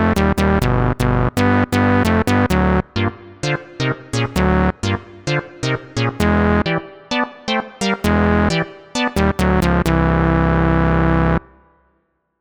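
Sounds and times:
two synth chords: 0.0s - 5.4s, 6.2s - 6.8s, 8.0s - 11.5s.

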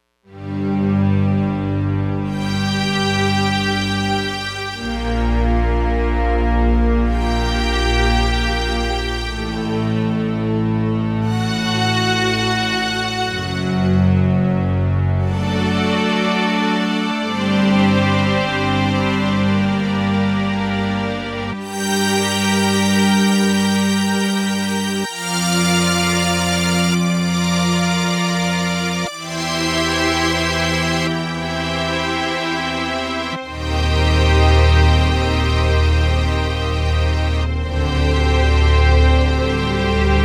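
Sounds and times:
synth octaves: 0.3s - 40.2s.

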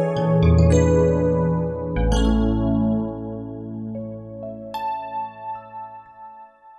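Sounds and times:
1980s FM synthesizer keys: 0.1s - 5.5s.

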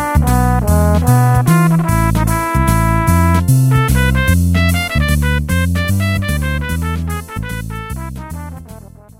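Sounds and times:
jazz waltz with automatic rhythms: 0.0s - 9.1s.

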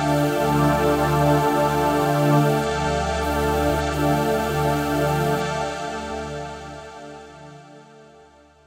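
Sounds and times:
E-mu Morpheus synthesized voice: 0.1s - 2.7s, 3.2s - 5.4s.

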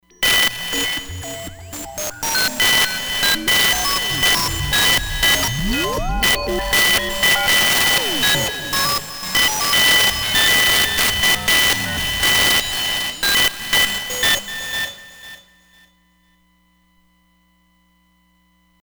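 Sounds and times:
synth alien radio: 0.2s - 14.5s.

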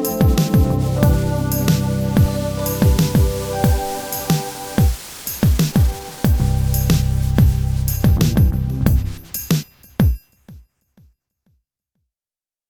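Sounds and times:
Korg Radias-R synthesizer beat: 0.0s - 9.9s.

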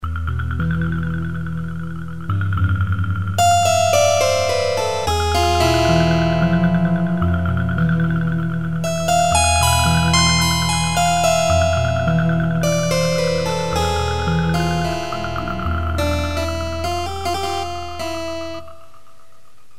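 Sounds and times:
keyboard: 0.0s - 19.4s.

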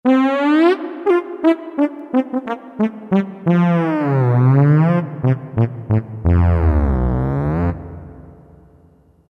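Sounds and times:
trombone: 0.1s - 7.8s.

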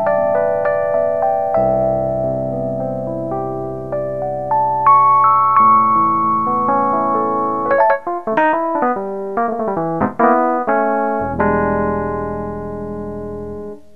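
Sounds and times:
electric piano preset demo: 0.0s - 13.9s.

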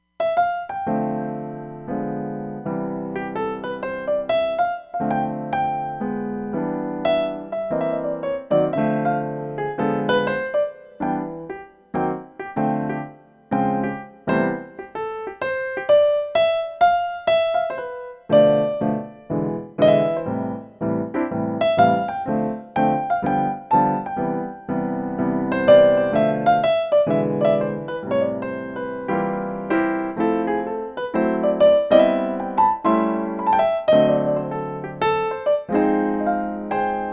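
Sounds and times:
studio grand piano: 0.0s - 37.1s.

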